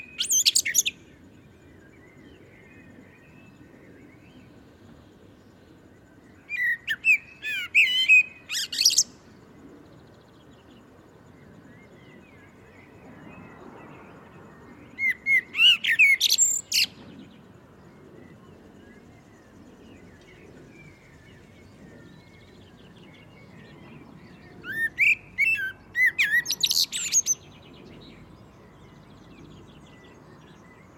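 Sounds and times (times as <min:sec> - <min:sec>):
common blackbird singing: 0:00.0 - 0:01.1, 0:06.4 - 0:09.2, 0:14.6 - 0:17.2, 0:18.4 - 0:30.9.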